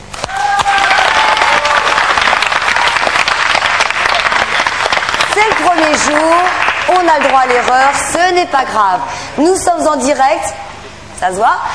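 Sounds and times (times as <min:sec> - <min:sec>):
studio audience applauding: 0:00.1 - 0:08.3
speech: 0:05.6 - 0:10.6, 0:11.2 - 0:11.7.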